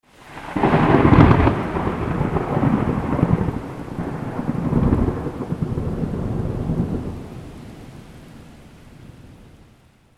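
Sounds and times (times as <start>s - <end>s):
thunder: 0.3s - 7.8s.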